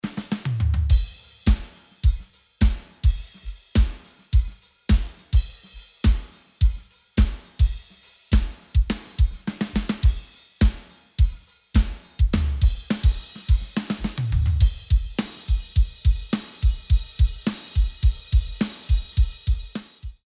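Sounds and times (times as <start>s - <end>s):
drums: 0.0s - 20.2s.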